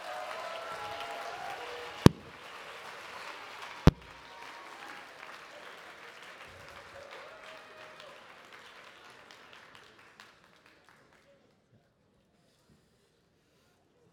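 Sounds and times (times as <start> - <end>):
audience applause welcoming panelists to the stage: 0.0 - 11.2
sharp loud knocks: 2.1 - 2.4.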